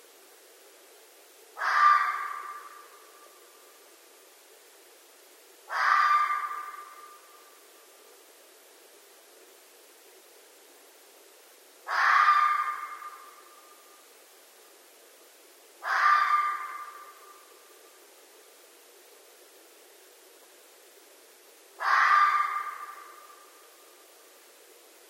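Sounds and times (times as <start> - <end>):
red fox giving harsh rasping screams at night: 1.6 - 2.6, 5.7 - 6.8, 11.9 - 13.1, 15.8 - 17.0, 21.8 - 23.1.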